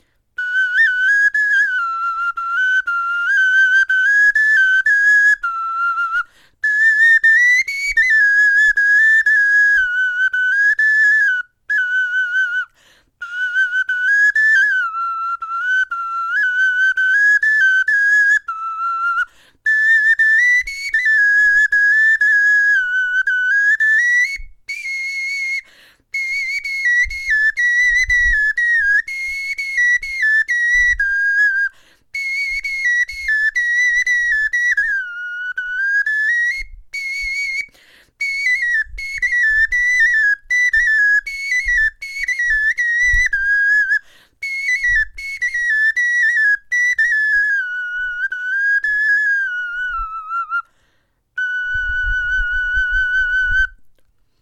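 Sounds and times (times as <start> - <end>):
bone flute melody: 0.4 - 50.7, 51.4 - 53.9.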